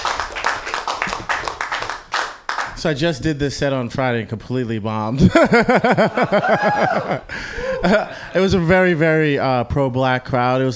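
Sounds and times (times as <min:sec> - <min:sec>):
audience applause for the comedians: 0:00.0 - 0:02.7
speech: 0:02.8 - 0:10.7
laughter: 0:05.2 - 0:08.7.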